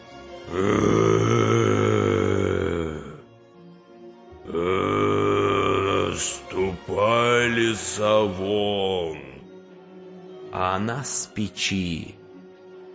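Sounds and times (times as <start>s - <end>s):
speech: 0.5s - 0.9s, 7.9s - 9.2s, 10.6s - 12.2s
person imitating a bear's growl: 0.5s - 3.3s, 4.4s - 9.4s.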